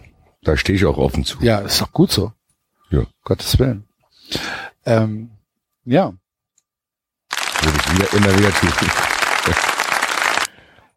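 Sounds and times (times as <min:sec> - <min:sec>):
speech: 0:00.4 - 0:06.2, 0:07.6 - 0:09.7
audience applause sound effect: 0:07.3 - 0:10.5.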